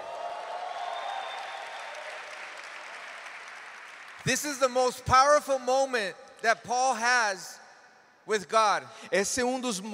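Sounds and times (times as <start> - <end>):
church congregation applauding: 0.0 - 6.6
speech: 4.2 - 7.6, 8.2 - 9.9.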